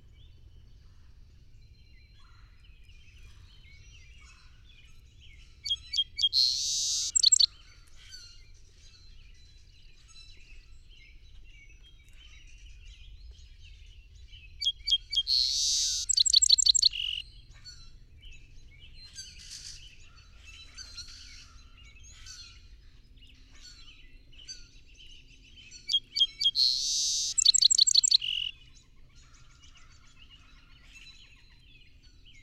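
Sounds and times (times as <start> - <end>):
birds twittering: 0.1 - 9.8, 10.4 - 32.4
song sparrow singing: 3.1 - 8.3, 11.1 - 29.4.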